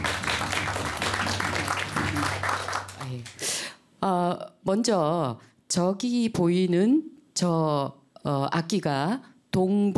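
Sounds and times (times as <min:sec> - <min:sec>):
audience applause: 0:00.0 - 0:03.4
speech: 0:04.0 - 0:09.9.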